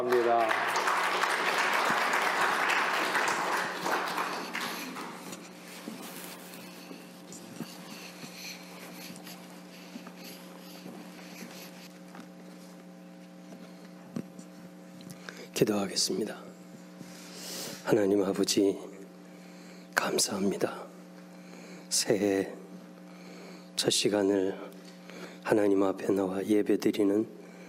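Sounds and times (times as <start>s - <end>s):
audience applause: 0.0s - 6.3s
speech: 15.6s - 16.4s, 17.9s - 18.9s, 20.1s - 20.8s, 22.0s - 22.6s, 23.8s - 24.7s, 25.5s - 27.4s.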